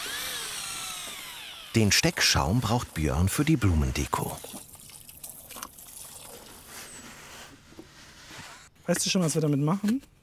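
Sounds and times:
speech: 0:01.8 - 0:04.7, 0:08.9 - 0:10.1
leftover clay being stirred with water: 0:02.1 - 0:06.8.

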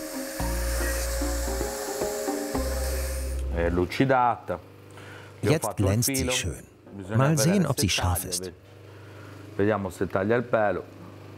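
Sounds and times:
machine polishing a hardened knife blade: 0:00.0 - 0:03.4
speech: 0:03.6 - 0:04.7, 0:05.4 - 0:08.8, 0:09.6 - 0:11.0.

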